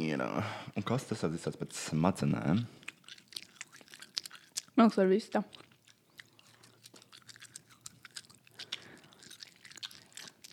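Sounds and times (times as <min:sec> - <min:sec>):
speech: 0:00.2 - 0:02.9, 0:04.8 - 0:05.6
person chewing food: 0:02.4 - 0:04.8, 0:05.5 - 0:10.5.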